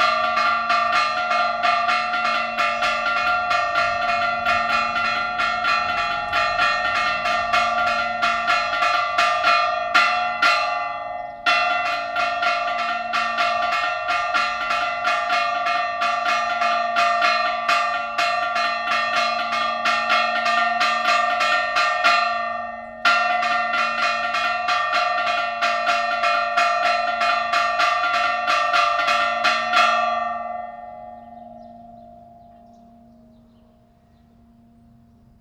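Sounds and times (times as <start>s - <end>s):
bells ringing at LaCorrada: 0.0s - 35.4s.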